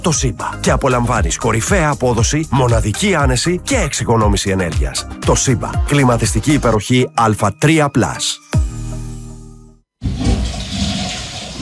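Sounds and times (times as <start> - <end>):
speech: 0.0 - 8.5
toilet flushing: 10.0 - 11.5.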